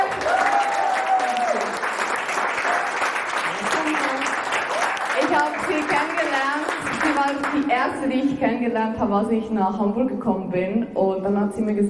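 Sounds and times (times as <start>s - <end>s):
audience applause: 0.0s - 7.7s
speech: 7.8s - 11.8s.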